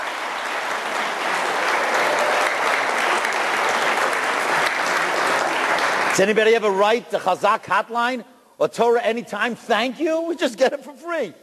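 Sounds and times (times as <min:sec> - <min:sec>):
audience applause: 0:00.0 - 0:06.4
speech: 0:06.2 - 0:11.4.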